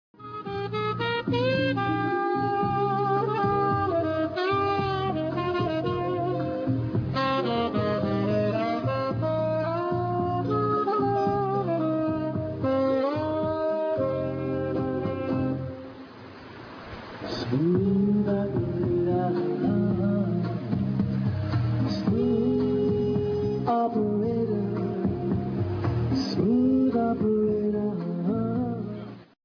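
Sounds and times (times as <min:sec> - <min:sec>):
smooth jazz: 0:00.2 - 0:16.1, 0:17.3 - 0:29.3.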